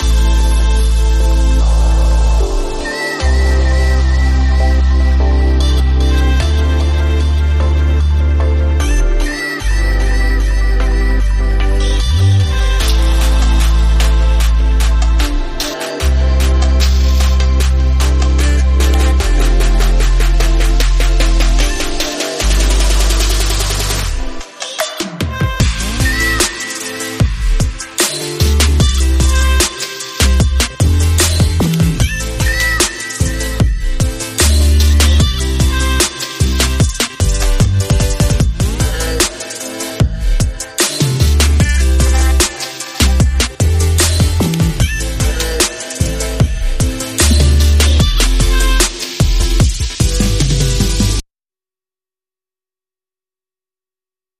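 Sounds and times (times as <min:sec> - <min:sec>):
island beach house music: 0:00.0 - 0:51.2.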